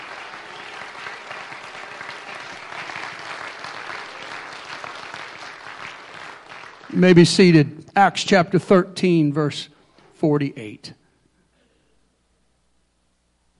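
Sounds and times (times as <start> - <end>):
audience clapping hands: 0.0 - 7.7
speech: 6.9 - 11.0.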